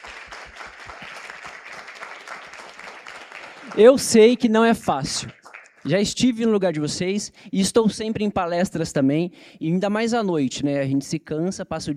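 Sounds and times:
audience applause: 0:00.0 - 0:04.5
speech: 0:03.8 - 0:11.9.

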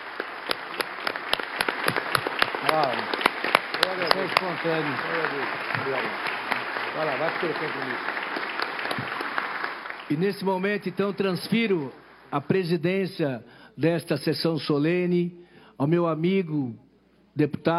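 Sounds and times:
warm standing applause: 0:00.0 - 0:12.6
speech: 0:04.4 - 0:06.4, 0:07.0 - 0:08.2, 0:10.1 - 0:16.8, 0:17.4 - 0:17.7.

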